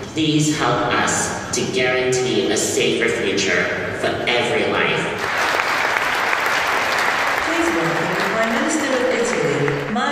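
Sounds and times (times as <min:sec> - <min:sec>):
speech: 0:00.1 - 0:05.2
applause after a speech: 0:05.2 - 0:10.0.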